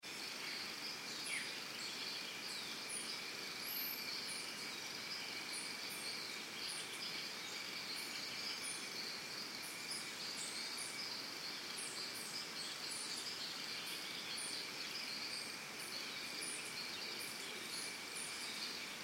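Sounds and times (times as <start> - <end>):
crickets chirping in chorus in a Costa Rica forest: 0.0 - 19.0.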